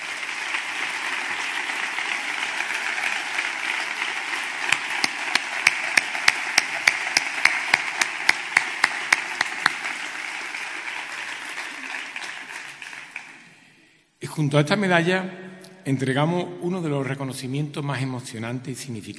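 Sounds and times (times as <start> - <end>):
applause: 0.0 - 13.9
speech: 14.4 - 19.1.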